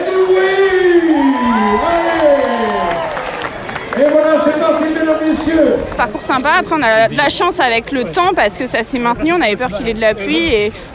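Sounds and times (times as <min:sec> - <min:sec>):
crowd cheering and whooping at a half-marathon finish: 0:00.0 - 0:05.4
scattered applause: 0:00.0 - 0:06.3
speech: 0:05.4 - 0:10.9.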